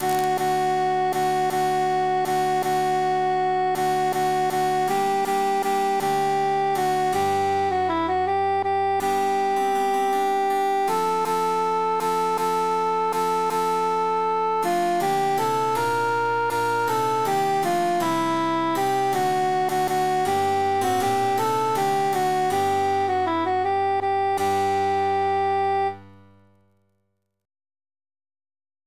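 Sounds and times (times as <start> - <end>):
emphasized cantus melody: 0.0 - 26.4.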